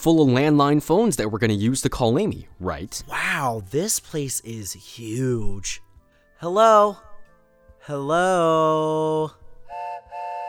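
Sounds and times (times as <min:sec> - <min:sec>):
speech: 0:00.0 - 0:07.1, 0:07.9 - 0:09.4
small toy train whistle: 0:09.6 - 0:10.4.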